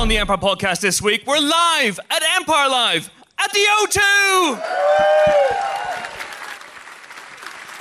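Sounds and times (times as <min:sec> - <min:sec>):
speech: 0:00.1 - 0:05.7
live audience applause: 0:04.6 - 0:07.7.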